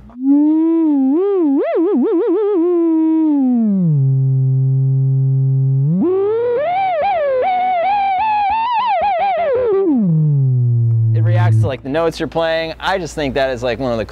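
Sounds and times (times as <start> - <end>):
self-oscillating pedal filter sine wave: 0.1 - 11.8
speech: 12.0 - 14.1.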